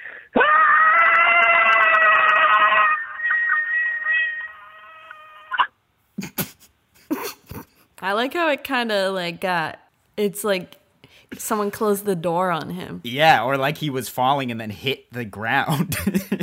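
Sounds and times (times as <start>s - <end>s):
cat-like scream sound effect: 0.4s - 5.7s
speech: 8.0s - 16.4s.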